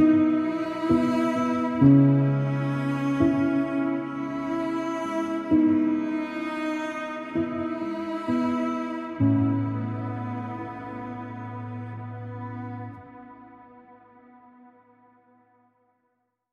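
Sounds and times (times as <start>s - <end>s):
instrumental piano: 0.0s - 13.0s.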